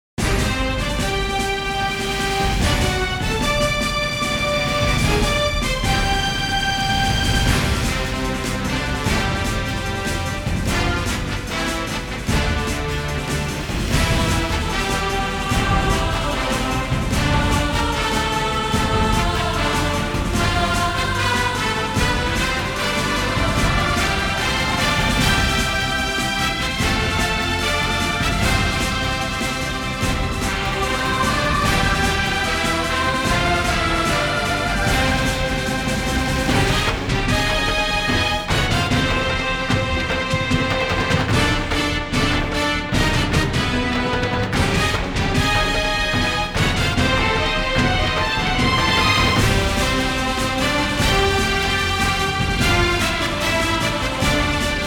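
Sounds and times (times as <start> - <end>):
instrumental music: 0.2 - 54.8.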